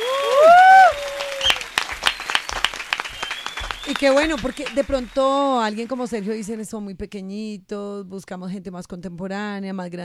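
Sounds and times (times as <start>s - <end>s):
audience applause: 0.0s - 6.6s
speech: 4.0s - 10.0s.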